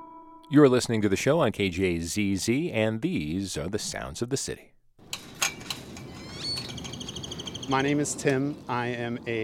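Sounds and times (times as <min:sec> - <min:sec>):
speech: 0:00.5 - 0:04.7, 0:07.7 - 0:09.4
African painted dogs chirping at feeding time: 0:06.2 - 0:07.9.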